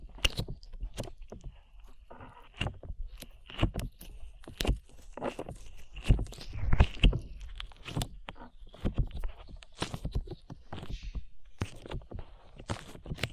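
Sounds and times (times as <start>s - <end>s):
slime being worked with sticky wet pops and squelches: 0.0s - 13.3s.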